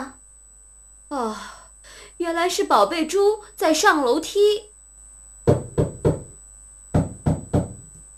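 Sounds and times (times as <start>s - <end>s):
faint steady hum: 0.0s - 8.1s
speech: 2.3s - 4.7s
loud hollow knocking on a door: 5.4s - 8.0s.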